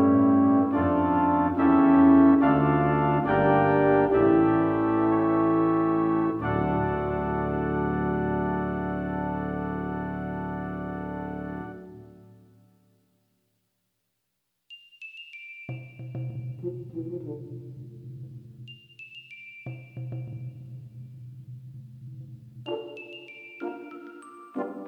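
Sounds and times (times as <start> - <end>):
brass choir playing carols: 0.0 - 12.6, 22.7 - 24.8.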